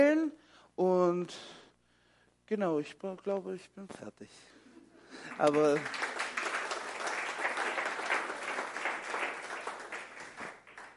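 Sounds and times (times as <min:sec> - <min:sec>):
speech: 0:00.0 - 0:01.6, 0:02.5 - 0:06.1
church congregation clapping: 0:05.1 - 0:10.9.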